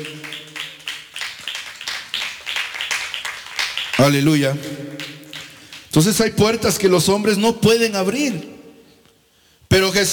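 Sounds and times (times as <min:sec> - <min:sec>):
audience clapping hands: 0:00.0 - 0:06.6
speech: 0:04.0 - 0:04.9, 0:06.0 - 0:08.6, 0:09.7 - 0:10.1.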